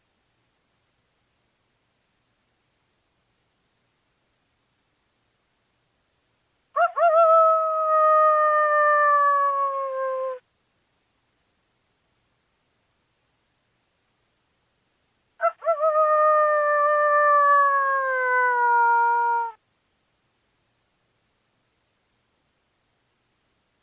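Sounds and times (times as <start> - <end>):
coyote howling: 6.8 - 10.4, 15.4 - 19.6.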